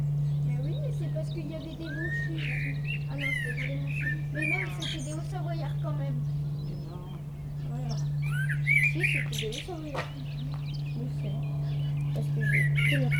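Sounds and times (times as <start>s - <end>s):
common blackbird singing perched atop a tree in a village: 0.0s - 13.1s.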